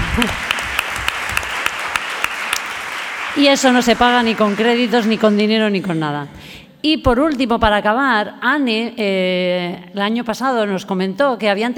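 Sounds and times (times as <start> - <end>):
applause for a team of workers at an event: 0.0 - 6.1
speech: 0.2 - 0.5, 3.4 - 11.7.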